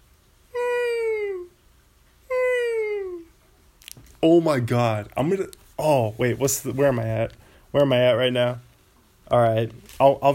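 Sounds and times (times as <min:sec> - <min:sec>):
person imitating a whale call: 0:00.5 - 0:01.6, 0:02.3 - 0:03.3
speech: 0:04.2 - 0:08.7, 0:09.3 - 0:10.3.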